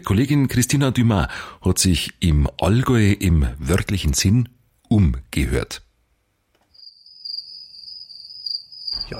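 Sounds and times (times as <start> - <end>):
speech: 0.0 - 5.9
cricket chirping on a summer evening in the Allgäu: 6.7 - 9.1.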